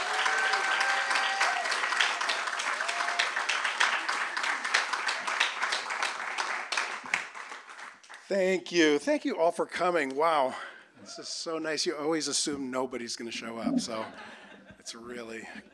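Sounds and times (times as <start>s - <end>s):
audience applause welcoming authors at a bookstore reading: 0.0s - 8.2s
speech: 8.3s - 15.7s
laughter: 13.4s - 15.7s.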